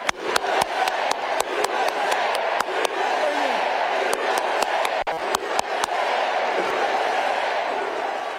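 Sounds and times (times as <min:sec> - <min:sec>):
person clapping: 0:00.0 - 0:03.0, 0:04.1 - 0:06.0
rally crowd chanting: 0:00.0 - 0:08.3.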